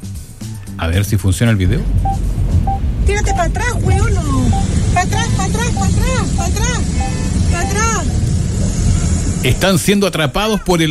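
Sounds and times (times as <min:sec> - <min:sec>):
speech: 0:00.8 - 0:02.4, 0:03.1 - 0:08.8, 0:09.4 - 0:10.8
vehicle horns honking: 0:04.6 - 0:08.1.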